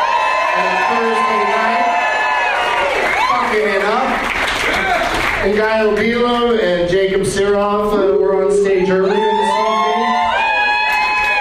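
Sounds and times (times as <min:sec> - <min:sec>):
whoops and shouted voices: 0:00.0 - 0:03.6, 0:08.8 - 0:11.3
comedy club crowd applauding and cheering: 0:00.0 - 0:06.4, 0:08.9 - 0:11.3
speech: 0:05.4 - 0:09.3.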